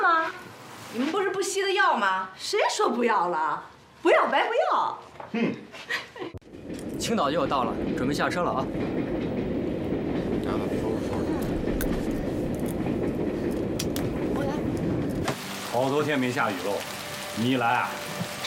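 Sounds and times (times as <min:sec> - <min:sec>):
speech: 0:00.9 - 0:06.3, 0:07.0 - 0:09.0, 0:15.7 - 0:18.2
train running on rails: 0:06.5 - 0:18.4.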